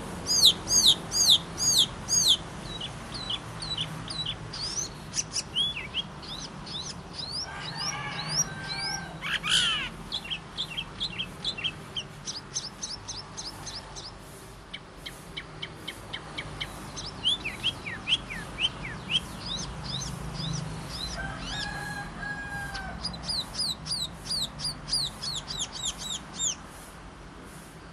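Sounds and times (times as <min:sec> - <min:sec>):
bird song: 0:00.0 - 0:26.9.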